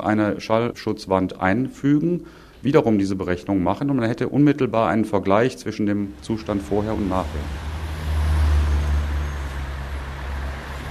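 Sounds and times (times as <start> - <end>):
speech: 0.0 - 7.7
loud street traffic: 6.1 - 10.9.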